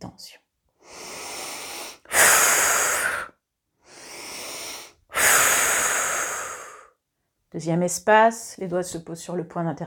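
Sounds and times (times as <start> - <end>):
speech: 0.0 - 1.0, 7.5 - 9.8
slow breathing during a guided relaxation exercise: 0.8 - 7.0.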